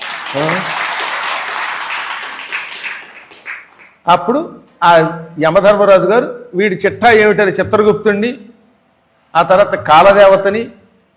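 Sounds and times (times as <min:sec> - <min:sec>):
audience clapping during a Telugu spiritual talk: 0:00.0 - 0:04.0
speech: 0:00.3 - 0:00.8, 0:04.0 - 0:08.5, 0:09.3 - 0:10.8.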